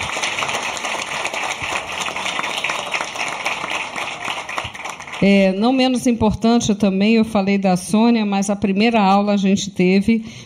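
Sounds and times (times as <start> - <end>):
audience applause: 0.0 - 5.3
speech: 5.2 - 10.4.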